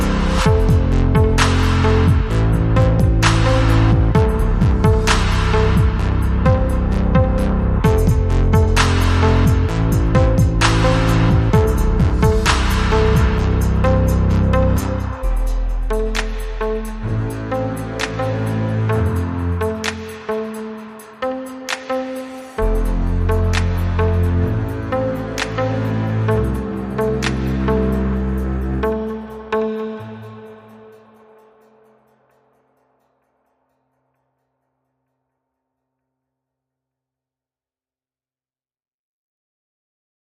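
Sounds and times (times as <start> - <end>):
glitch synth mix: 0.0 - 31.4.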